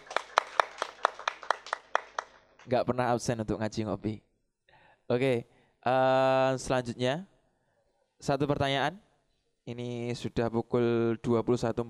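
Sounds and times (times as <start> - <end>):
audience clapping in rhythm: 0.0 - 2.8
speech: 2.7 - 4.3, 5.1 - 7.3, 8.2 - 11.8.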